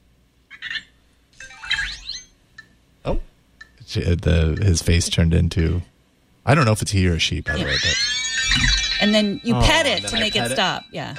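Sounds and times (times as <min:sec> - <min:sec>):
speech: 0:03.0 - 0:03.3, 0:03.9 - 0:11.1
toy robot's timer alarm going off: 0:07.7 - 0:11.1.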